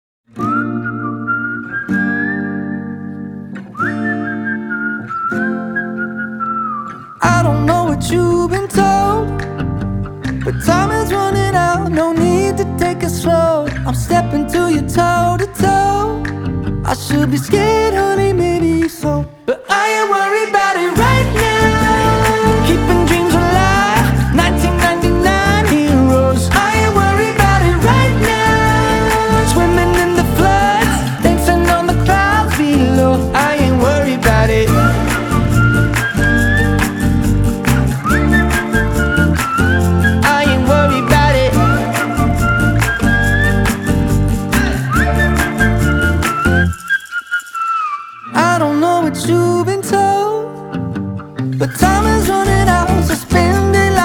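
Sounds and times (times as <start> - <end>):
acoustic music: 0.3 - 54.0.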